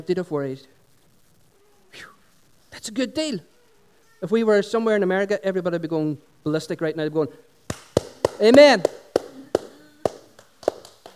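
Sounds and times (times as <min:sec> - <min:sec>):
speech: 0:00.0 - 0:00.8, 0:02.8 - 0:03.5, 0:04.2 - 0:07.5, 0:08.4 - 0:09.0
scattered half-hearted hand claps: 0:07.7 - 0:11.1.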